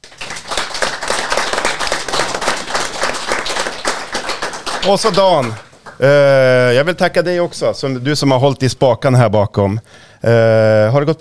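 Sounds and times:
audience applause: 0:00.0 - 0:06.4
speech: 0:04.8 - 0:11.2.

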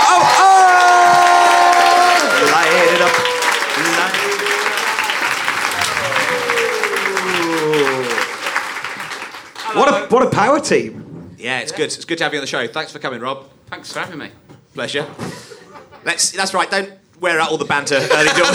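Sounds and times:
audience applause: 0:00.0 - 0:10.1
laughter: 0:00.0 - 0:10.1, 0:15.0 - 0:18.5
speech: 0:10.4 - 0:15.4, 0:16.0 - 0:18.5.

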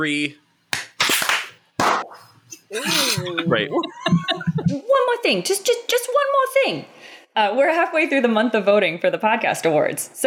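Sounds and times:
speech: 0:00.0 - 0:00.4, 0:02.7 - 0:10.2
hand claps: 0:00.7 - 0:02.1
laughter: 0:02.7 - 0:04.8.

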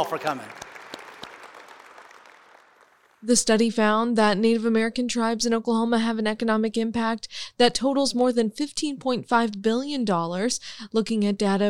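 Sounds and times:
speech: 0:00.0 - 0:00.6, 0:03.2 - 0:11.6
crowd applause: 0:00.0 - 0:03.2.

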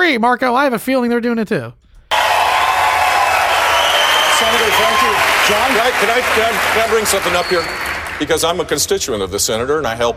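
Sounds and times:
speech: 0:00.1 - 0:01.8, 0:04.5 - 0:10.1
crowd applauding: 0:02.1 - 0:08.9.

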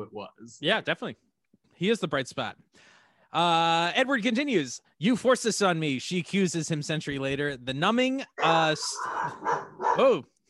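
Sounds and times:
speech: 0:00.0 - 0:10.3
dog barking and yipping excitedly: 0:08.4 - 0:10.2.

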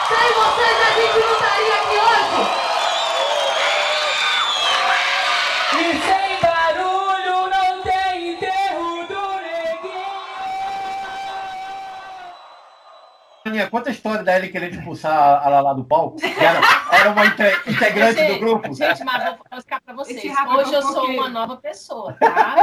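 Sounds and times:
audience applause and cheering: 0:00.0 - 0:13.5
speech: 0:13.6 - 0:22.6
laughter: 0:16.2 - 0:19.4, 0:22.1 - 0:22.6.

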